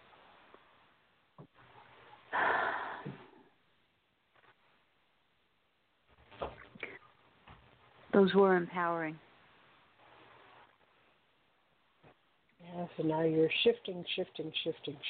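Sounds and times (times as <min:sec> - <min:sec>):
deep breath: 0:02.3 - 0:03.6
speech: 0:08.2 - 0:09.2, 0:13.0 - 0:15.0.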